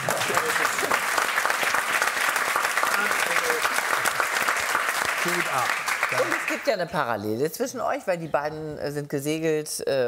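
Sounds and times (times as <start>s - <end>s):
audience applause: 0.0s - 6.8s
speech: 5.2s - 10.0s.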